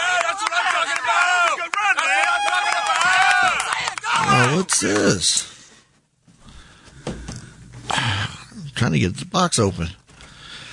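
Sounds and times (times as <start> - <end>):
rowdy group of men cheering: 0.0 - 5.2
speech: 4.5 - 5.5, 8.8 - 10.0.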